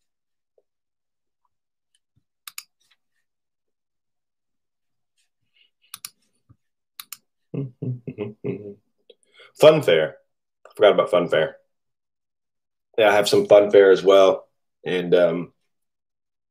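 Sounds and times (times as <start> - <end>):
computer mouse clicks opening a crypto wallet: 2.4 - 2.8, 5.9 - 6.3, 7.0 - 7.3
speech: 7.6 - 8.8, 9.5 - 10.2, 10.8 - 11.6, 13.0 - 15.5.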